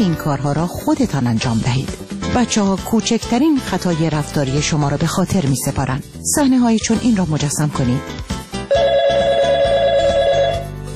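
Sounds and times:
speech: 0.0 - 8.3
telephone ringing: 8.7 - 10.8.

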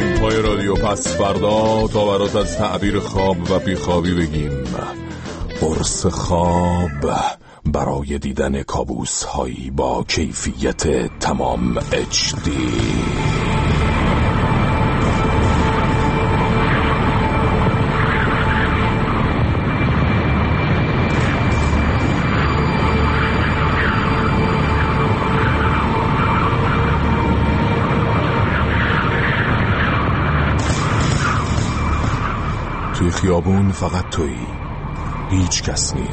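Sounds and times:
speech: 0.3 - 13.4, 33.1 - 36.1
howling wind in an empty street: 10.1 - 36.1.

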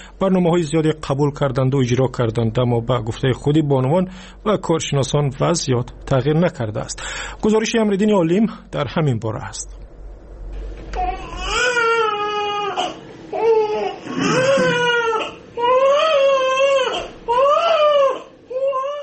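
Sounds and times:
speech: 0.2 - 9.8
infant crying: 11.0 - 19.0.

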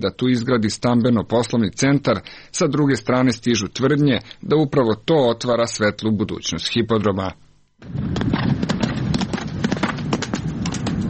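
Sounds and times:
speech: 0.0 - 8.3
racehorse hooves galloping at racetrack: 7.8 - 11.0.

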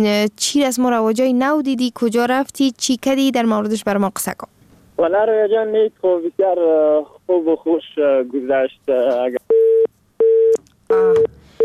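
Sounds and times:
speech: 0.0 - 9.4, 10.9 - 11.4
telephone busy tone after a listener's call to a radio program drops: 9.5 - 11.6.

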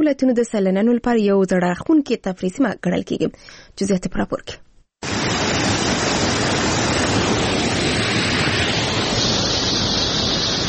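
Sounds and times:
speech: 0.0 - 5.3
cold clear water of the Mazar Baba spring rushing in Uruzgan: 5.0 - 10.6.

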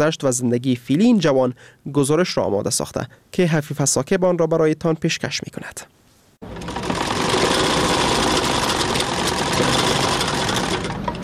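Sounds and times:
speech: 0.0 - 6.7
sewing machine running in tailor's shop: 6.4 - 11.2.

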